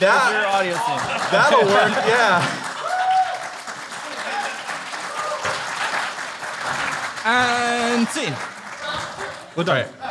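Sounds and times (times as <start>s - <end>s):
speech: 0.0s - 2.7s, 7.2s - 8.5s, 9.6s - 10.0s
laughter: 0.0s - 2.8s
audience applause: 0.0s - 9.8s.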